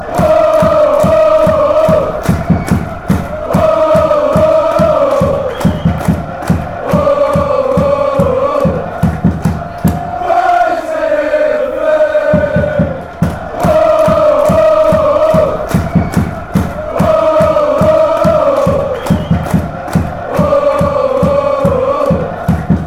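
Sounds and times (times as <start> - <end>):
fans chanting woah: 0.0 - 22.8.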